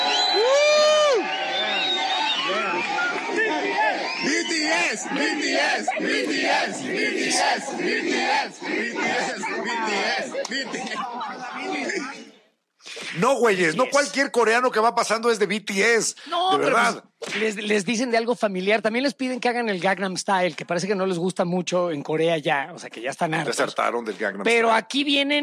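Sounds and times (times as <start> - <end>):
crowd of people shouting and chanting at passing tourists: 0.0 - 12.4
speech: 4.9 - 12.2, 13.2 - 25.4
laughter: 10.3 - 12.2.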